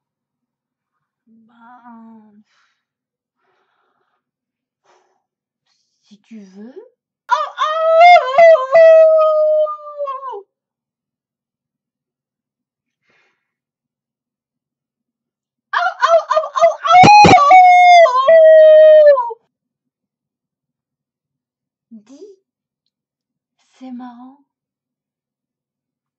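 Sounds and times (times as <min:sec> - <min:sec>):
speech: 0:01.3 - 0:02.7, 0:06.1 - 0:07.4
person imitating a wolf howling at the moon: 0:07.3 - 0:10.4, 0:15.8 - 0:19.4.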